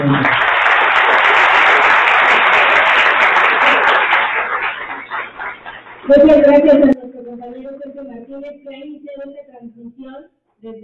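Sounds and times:
crowd applauding: 0:00.0 - 0:06.7
speech: 0:00.1 - 0:00.4, 0:06.1 - 0:10.8.

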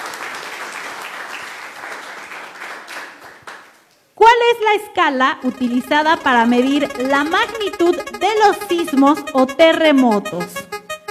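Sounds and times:
audience applause: 0:00.0 - 0:03.7
speech: 0:04.5 - 0:10.6.

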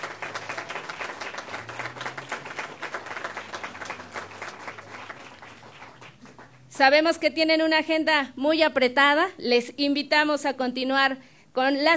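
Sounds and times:
audience applause: 0:00.0 - 0:06.7
speech: 0:06.8 - 0:11.9.

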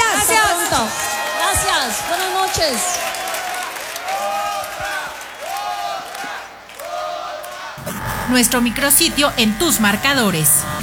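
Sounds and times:
audience applause: 0:00.0 - 0:08.3
crowd cheering and whooping: 0:00.0 - 0:08.3
speech: 0:08.3 - 0:10.8.

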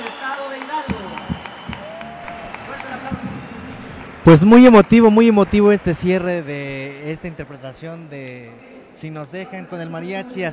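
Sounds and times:
rhythmic clapping: 0:00.0 - 0:07.5
audience applause: 0:00.0 - 0:07.6
speech: 0:04.2 - 0:10.5.

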